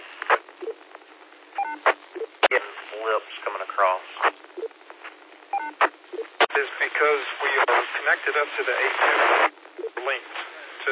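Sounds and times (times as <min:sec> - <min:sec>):
squelch static bursts: 0:00.0 - 0:10.8
repeater courtesy tones over a tinny radio channel: 0:01.6 - 0:02.3, 0:05.5 - 0:05.8
speech: 0:08.1 - 0:10.8.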